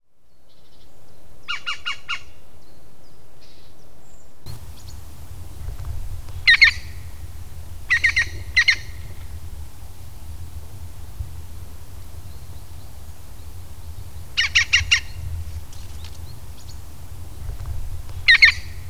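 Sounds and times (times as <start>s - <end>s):
European green woodpecker giving loud ringing notes: 4.5s - 18.8s.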